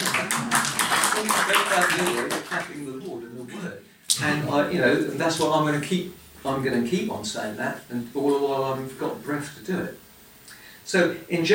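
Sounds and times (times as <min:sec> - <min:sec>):
audience clapping: 0:00.0 - 0:03.1
speech: 0:01.2 - 0:10.0, 0:10.9 - 0:11.5.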